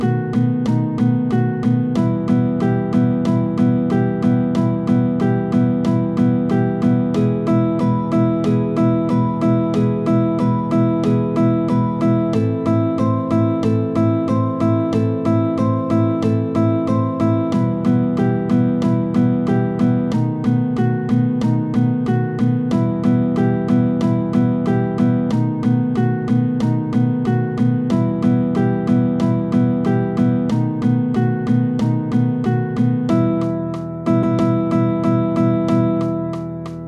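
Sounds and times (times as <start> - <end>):
two guitars playing tango backing track: 0.0 - 36.8.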